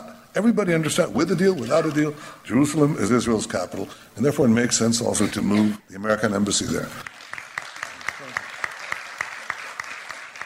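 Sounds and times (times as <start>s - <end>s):
speech: 0.4s - 7.2s
audience applause: 7.0s - 10.4s.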